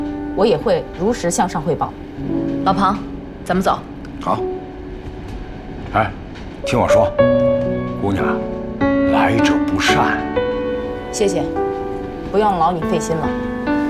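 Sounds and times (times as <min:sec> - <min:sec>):
moving passenger train rumble: 0:00.0 - 0:13.8
speech: 0:00.4 - 0:04.5, 0:05.9 - 0:07.4, 0:08.0 - 0:08.5, 0:09.1 - 0:10.4, 0:11.1 - 0:11.6, 0:12.3 - 0:13.8.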